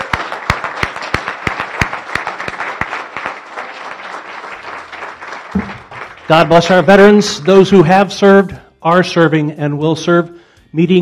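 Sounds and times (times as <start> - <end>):
audience applause: 0.0 - 6.9
speech: 6.3 - 10.9.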